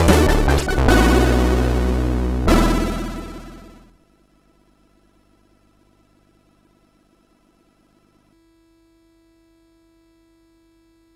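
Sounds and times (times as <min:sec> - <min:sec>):
SID MOS6581R3 chip sound: 0:00.0 - 0:03.8.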